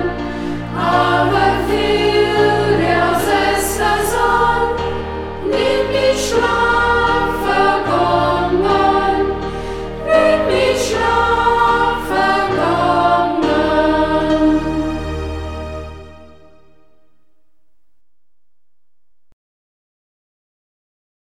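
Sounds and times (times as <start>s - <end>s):
choir singing in local dialect: 0.0s - 16.9s.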